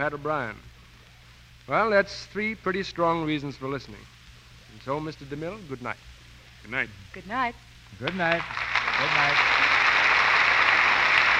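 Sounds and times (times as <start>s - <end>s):
speech: 0.0s - 0.7s, 1.7s - 6.0s, 6.6s - 9.6s
audience applause: 8.0s - 11.3s.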